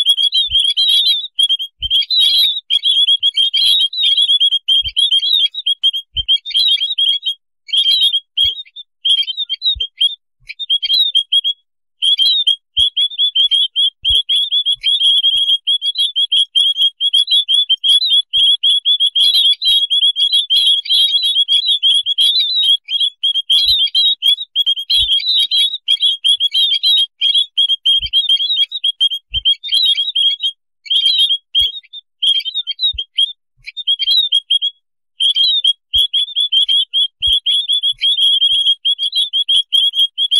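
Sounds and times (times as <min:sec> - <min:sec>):
white-headed munia high chirps: 0:00.0 - 0:30.6, 0:31.2 - 0:40.3.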